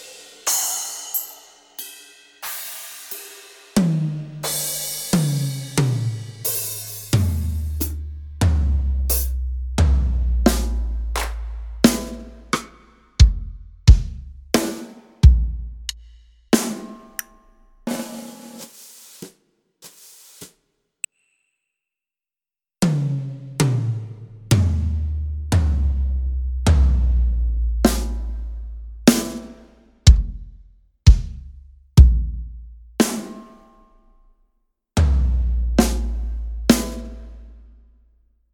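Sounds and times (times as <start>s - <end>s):
drum: 3.7s - 17.0s, 22.8s - 28.5s, 29.1s - 29.5s, 30.1s - 30.5s, 31.1s - 33.4s, 35.0s - 37.3s.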